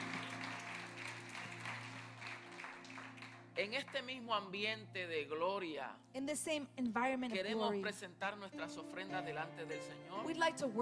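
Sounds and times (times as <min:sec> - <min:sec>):
audience applause: 0:00.0 - 0:04.1
speech: 0:03.6 - 0:10.8.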